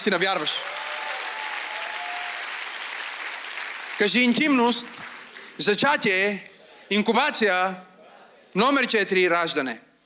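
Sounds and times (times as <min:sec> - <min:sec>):
speech: 0:00.0 - 0:00.9, 0:04.0 - 0:07.9, 0:08.5 - 0:09.9
crowd applause: 0:00.6 - 0:05.7.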